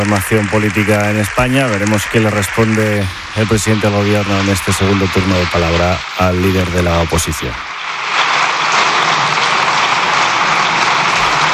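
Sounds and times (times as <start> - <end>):
parliament deputies applauding: 0.0 - 5.6, 8.3 - 11.5
speech: 0.0 - 8.2.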